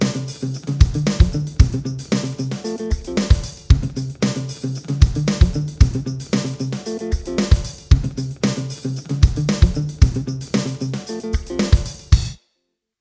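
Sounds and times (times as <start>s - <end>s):
drum kit beat at 114 BPM: 0.0s - 12.4s.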